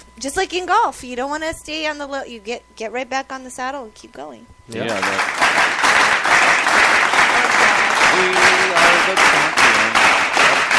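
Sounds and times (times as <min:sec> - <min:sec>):
speech: 0:00.2 - 0:06.1
slow clap spreading through an audience: 0:04.8 - 0:10.7.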